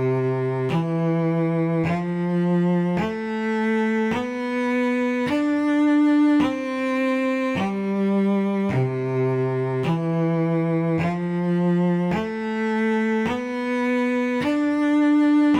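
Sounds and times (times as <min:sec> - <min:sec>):
cello melody: 0:00.0 - 0:15.5.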